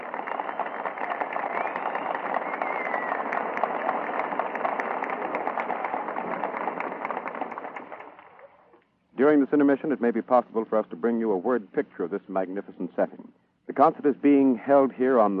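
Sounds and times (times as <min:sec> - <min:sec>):
audience applause at outdoor concert at the Lincoln Memorial: 0:00.0 - 0:08.8
speech: 0:09.2 - 0:15.3.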